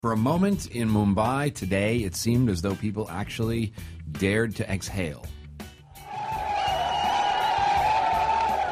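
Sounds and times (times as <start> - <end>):
speech: 0.0 - 5.4
crowd cheering outside the Nariman House Jewish Cultural Center: 5.9 - 8.7.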